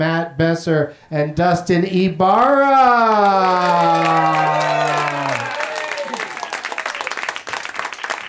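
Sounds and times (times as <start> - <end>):
speech: 0.0 - 4.5
crowd applauding and cheering: 3.0 - 8.2.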